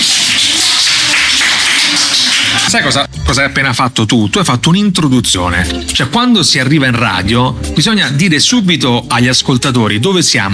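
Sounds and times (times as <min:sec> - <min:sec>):
applause: 0:00.0 - 0:03.0
speech: 0:02.7 - 0:10.5.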